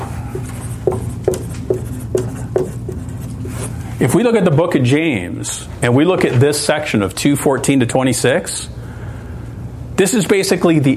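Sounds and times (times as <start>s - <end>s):
writing on a board: 0.3s - 3.8s
speech: 4.0s - 8.8s, 10.0s - 10.9s.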